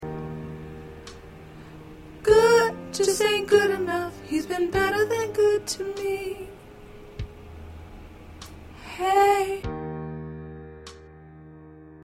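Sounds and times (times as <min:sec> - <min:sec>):
soprano singing: 0:02.1 - 0:06.9, 0:08.8 - 0:09.8.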